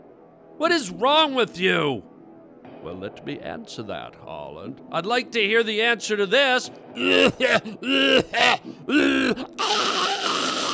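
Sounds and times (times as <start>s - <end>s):
speech: 0.6s - 2.1s, 2.8s - 9.8s
coughing: 7.0s - 10.7s
throat noises: 7.0s - 10.7s.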